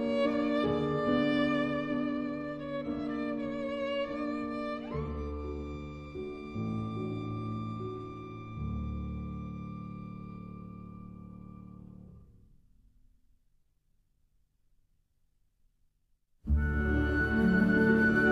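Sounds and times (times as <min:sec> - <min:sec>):
violin: 0:00.0 - 0:11.8, 0:16.5 - 0:18.2
piano: 0:00.0 - 0:13.2, 0:16.4 - 0:18.2.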